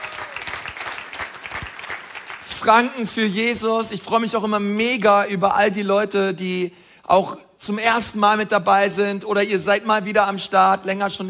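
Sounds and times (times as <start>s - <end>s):
church congregation clapping: 0.0s - 3.2s
speech: 2.6s - 11.2s.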